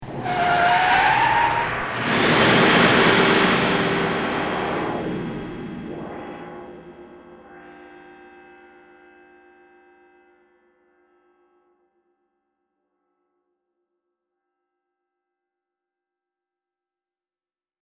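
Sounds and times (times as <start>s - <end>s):
crash: 0.1s - 7.6s.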